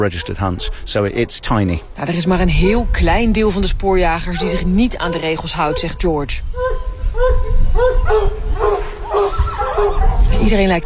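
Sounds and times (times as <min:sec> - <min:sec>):
hunting hounds barking: 0:00.0 - 0:02.8, 0:04.2 - 0:10.8
speech: 0:00.0 - 0:08.4, 0:09.2 - 0:10.8.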